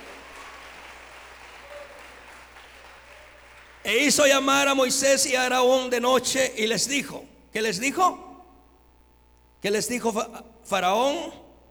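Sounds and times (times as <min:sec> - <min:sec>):
audience applause: 0:00.0 - 0:03.9
speech: 0:03.9 - 0:08.2, 0:09.6 - 0:11.4.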